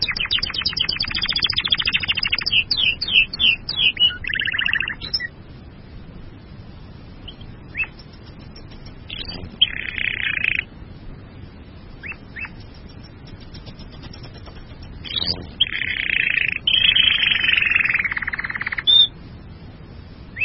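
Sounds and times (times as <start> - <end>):
bird song with chirps and trills: 0.0 - 5.4, 7.2 - 10.7, 12.0 - 19.2.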